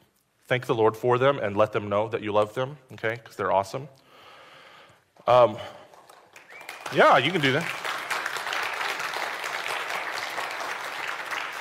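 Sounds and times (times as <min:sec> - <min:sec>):
speech: 0:00.5 - 0:04.0, 0:05.2 - 0:05.8, 0:06.9 - 0:07.8
audience applause: 0:05.9 - 0:11.5.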